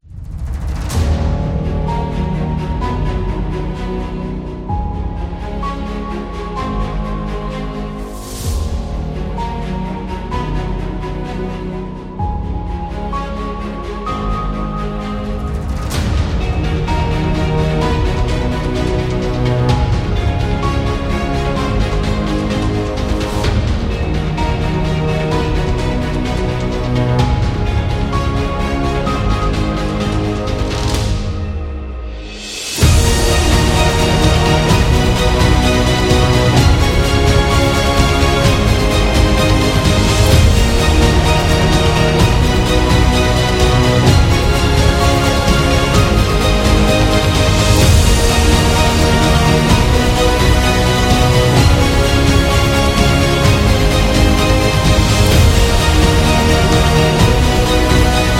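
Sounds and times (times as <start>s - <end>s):
epic cinematic music: 0.0s - 58.3s.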